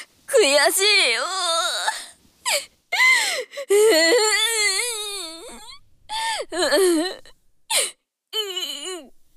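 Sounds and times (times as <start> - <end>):
speech: 0.4 - 1.5, 2.5 - 2.8
girl crying with wails and sobbing: 1.2 - 9.1.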